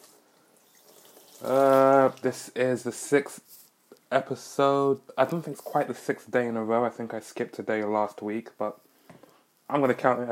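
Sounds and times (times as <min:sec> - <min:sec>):
washing dishes at the kitchen sink: 0:00.0 - 0:02.1
speech: 0:01.4 - 0:03.5, 0:04.1 - 0:08.8, 0:09.7 - 0:10.3.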